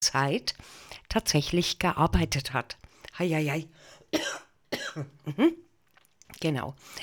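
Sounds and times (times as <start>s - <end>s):
speech: 0.0s - 5.6s, 6.3s - 7.0s
cough: 4.1s - 5.6s.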